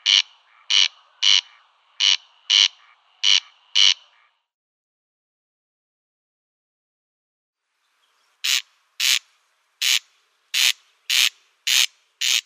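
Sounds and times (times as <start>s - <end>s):
Corn crake display call, harsh grating crex-crex rasps: 0.0s - 4.3s, 8.4s - 9.2s, 9.8s - 12.4s.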